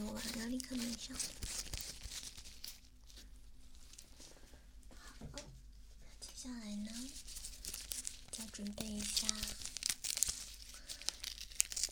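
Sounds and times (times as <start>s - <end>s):
medical adhesive tape rustling and tearing: 0.0s - 3.2s, 6.9s - 11.9s
speech: 0.7s - 1.7s, 8.6s - 9.6s.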